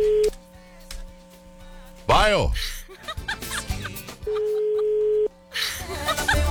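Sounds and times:
speech: 2.3 - 2.8
laughter: 2.9 - 4.6, 5.6 - 6.4
unanswered phone call ring tone: 4.3 - 5.3.

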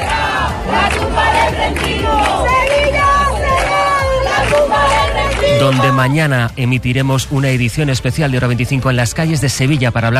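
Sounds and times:
protest rally crowd chanting outside government delegation office in Seville: 0.0 - 6.3
speech: 5.6 - 10.1.

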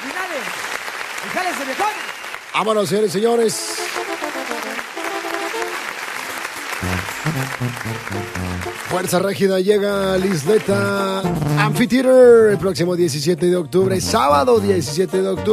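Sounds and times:
audience applause: 0.0 - 11.4
speech: 1.2 - 4.1, 7.4 - 15.5.

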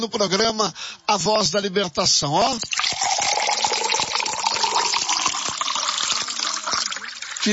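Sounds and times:
speech: 0.0 - 3.1
water being poured to drink: 2.4 - 7.5.

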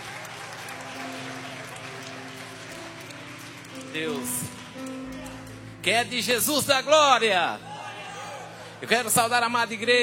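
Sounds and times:
church audience applauding: 0.0 - 5.8
speech: 3.9 - 5.0, 5.8 - 7.7, 8.8 - 10.0.

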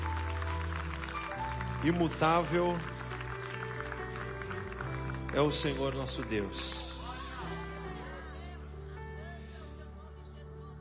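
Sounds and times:
audience applause: 0.0 - 8.1
speech: 1.8 - 2.9, 5.3 - 6.9.

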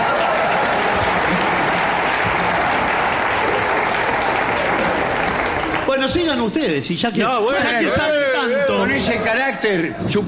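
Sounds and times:
audience clapping: 0.0 - 6.7
speech: 6.3 - 10.2.

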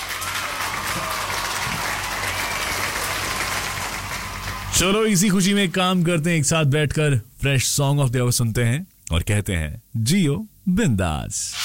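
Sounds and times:
applause: 0.0 - 5.5
speech: 4.8 - 11.6.

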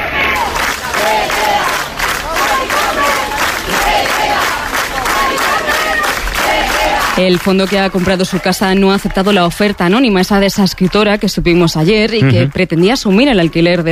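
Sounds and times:
neighbours chanting in support of an evicted resident: 0.0 - 8.6, 12.2 - 12.6
people clapping: 0.0 - 13.9
speech: 7.2 - 13.9.

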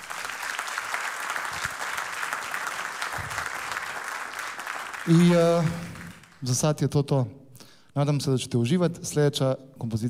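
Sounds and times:
audience applause for a tenor saxophone player: 0.0 - 6.5
speech: 5.0 - 7.4, 8.0 - 10.0.

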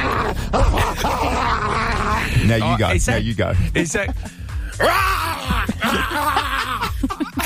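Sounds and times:
person imitating a dog: 0.0 - 2.3
laughter: 0.0 - 2.8, 3.8 - 7.4
speech: 2.4 - 7.2.

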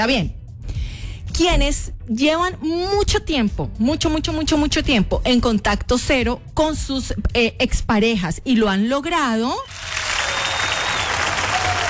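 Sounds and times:
speech: 0.0 - 0.4, 1.4 - 10.0
many hands clapping: 9.7 - 11.8.

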